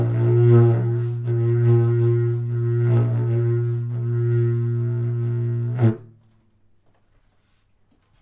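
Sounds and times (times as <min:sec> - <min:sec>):
didgeridoo: 0:00.0 - 0:06.2.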